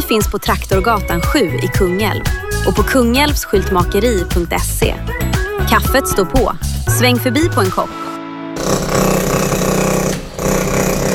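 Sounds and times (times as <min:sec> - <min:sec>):
speech: 0:00.1 - 0:08.1
hydraulic breaker hammer pounding: 0:08.6 - 0:11.1.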